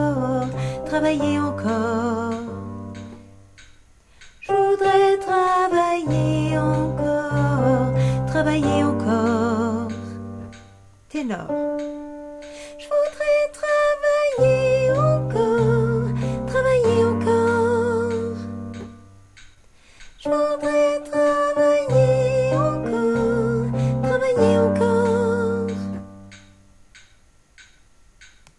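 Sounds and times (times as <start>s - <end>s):
soprano voice: 0.0s - 3.2s, 4.4s - 19.0s, 20.2s - 26.3s
tenor voice: 11.1s - 11.6s.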